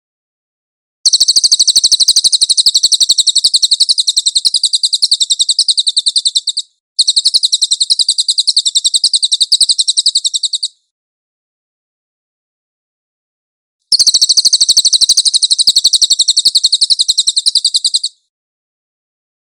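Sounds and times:
Cililin buzzing trill song: 1.1 - 10.8, 13.9 - 18.2.

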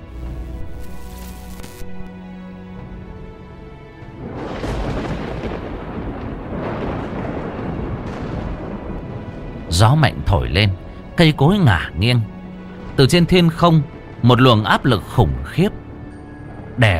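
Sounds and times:
loud thunder crashing: 4.2 - 10.9
speech: 9.8 - 12.4, 13.0 - 15.7, 16.8 - 16.9.

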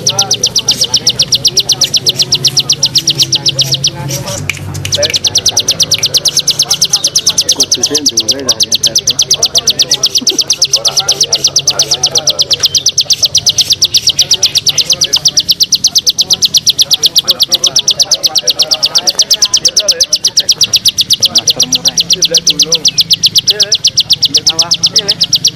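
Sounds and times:
Bar-winged prinia singing rapid ticking series of high notes: 0.0 - 25.5.

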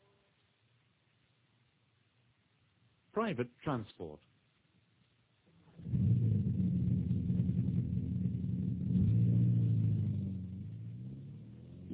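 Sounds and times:
speech: 3.2 - 4.3
car engine idling and revving: 5.6 - 11.9.

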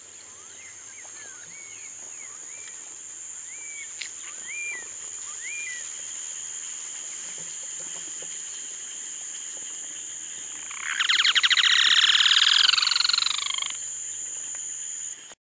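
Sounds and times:
Yellow-chinned spinetail Certhiaxis cinnamomeus cearensis calling in quick dry chattering rattles: 10.6 - 13.8.

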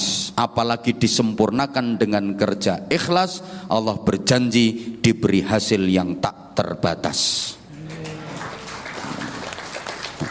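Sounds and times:
speech: 0.4 - 7.6
crowd applauding: 7.8 - 10.3.

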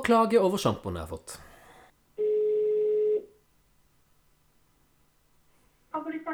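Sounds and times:
speech: 0.0 - 1.5
telephone ringing tone: 2.2 - 3.4.

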